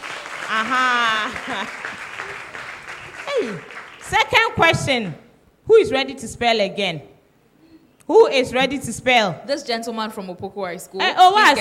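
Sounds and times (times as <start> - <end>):
audience clapping: 0.0 - 5.2
speech: 0.5 - 2.4, 3.4 - 7.1, 8.1 - 11.5.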